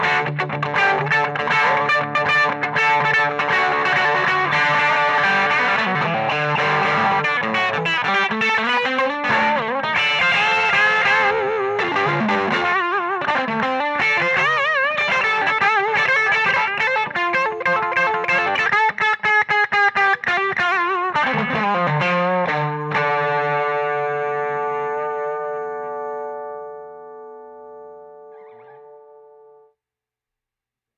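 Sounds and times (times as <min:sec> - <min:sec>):
Strat electric guitar on bridge pickup with hotrod high tone: 0:00.0 - 0:29.7.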